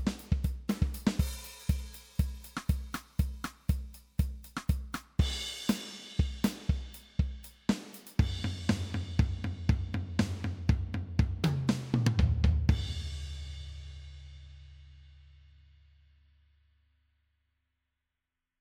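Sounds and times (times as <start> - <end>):
punk drum pattern: 0.0 - 13.5.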